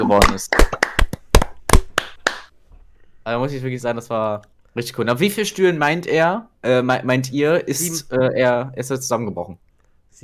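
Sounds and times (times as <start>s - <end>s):
speech: 0.0s - 0.7s, 3.3s - 9.6s
hands clapping: 0.0s - 2.6s.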